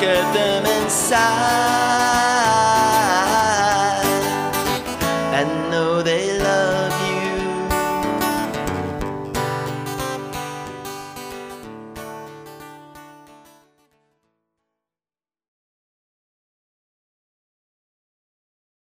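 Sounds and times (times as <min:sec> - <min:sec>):
acoustic guitar playing oldies music: 0:00.0 - 0:14.4.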